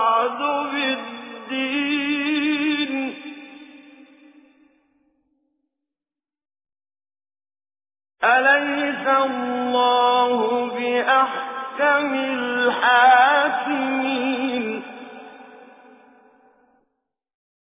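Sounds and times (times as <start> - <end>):
tajweed recitation of a Quran surah: 0.0 - 4.1, 8.2 - 15.9.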